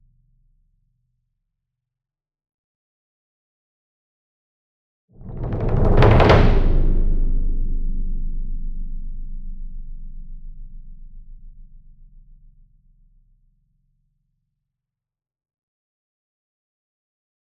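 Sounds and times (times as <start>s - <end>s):
40 inch concert bass drum roll with soft beater: 5.2s - 10.3s.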